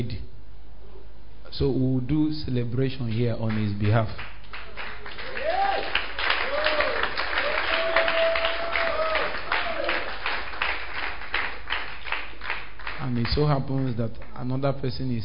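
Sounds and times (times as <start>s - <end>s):
speech: 1.5s - 4.3s, 13.3s - 15.2s
people clapping: 3.1s - 14.6s.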